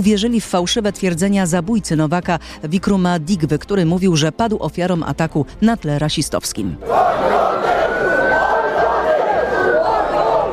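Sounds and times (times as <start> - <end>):
speech: 0.0 - 7.8
rioting crowd shouting: 6.8 - 10.5.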